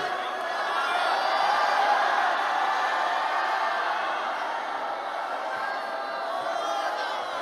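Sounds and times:
audience shouting together: 0.0 - 7.4.

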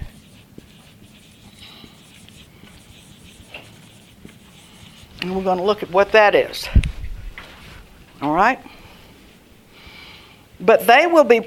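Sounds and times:
marker drawing a green line on a board: 0.0 - 6.2
speech: 5.2 - 6.8, 8.2 - 8.7, 10.6 - 11.4.

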